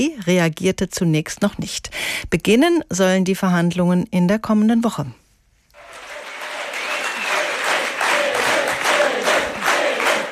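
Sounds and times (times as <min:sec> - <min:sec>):
speech: 0:00.0 - 0:05.2
crowd cheering and applauding at a Left party special convention: 0:05.8 - 0:10.3.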